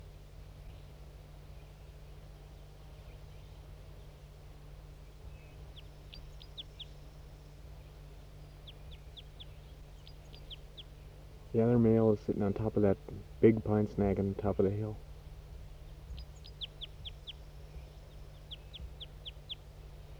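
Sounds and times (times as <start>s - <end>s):
hiss: 0.0s - 20.1s
high thin bird song: 5.1s - 20.1s
steady low hum: 5.3s - 20.1s
speech: 11.6s - 15.0s.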